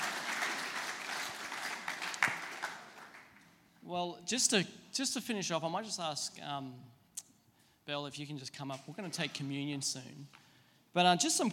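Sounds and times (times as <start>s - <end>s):
audience applause: 0.0s - 3.5s
speech: 3.9s - 7.0s, 7.9s - 11.5s.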